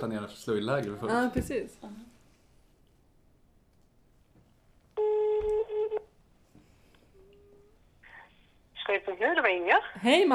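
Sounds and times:
speech: 0.0 - 2.2, 8.9 - 10.3
telephone ringback tone: 5.0 - 6.0.

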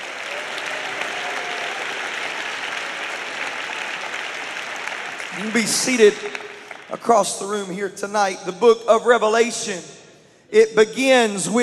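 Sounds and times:
audience clapping hands: 0.0 - 7.8
speech: 5.4 - 11.6.

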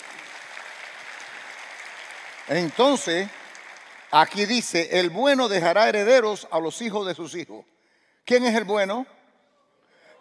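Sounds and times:
audience applause: 0.0 - 5.4
speech: 2.5 - 3.4, 4.1 - 9.2.

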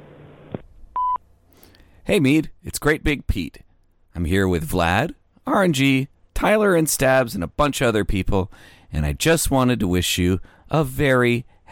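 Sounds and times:
answering machine beep: 1.0 - 1.2
speech: 2.1 - 3.6, 4.2 - 11.6.

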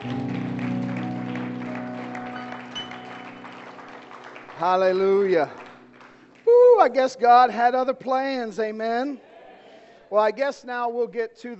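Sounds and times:
audience hand clapping: 0.0 - 7.1
speech: 4.6 - 5.6, 6.8 - 9.3, 10.1 - 11.5.

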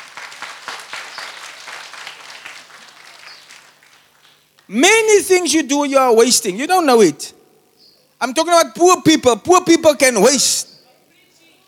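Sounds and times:
audience clapping: 0.0 - 4.7
speech: 4.7 - 7.4, 8.2 - 10.7.

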